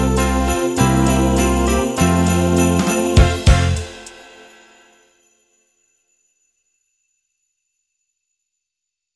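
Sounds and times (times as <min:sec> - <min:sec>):
karaoke singing: 0:00.0 - 0:04.3.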